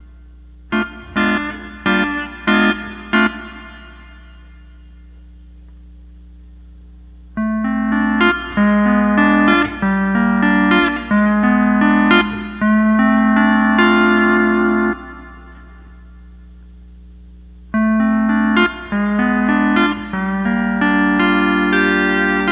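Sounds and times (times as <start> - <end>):
12-string lap guitar playing: 0.7 - 4.8, 7.4 - 16.2, 17.7 - 22.5.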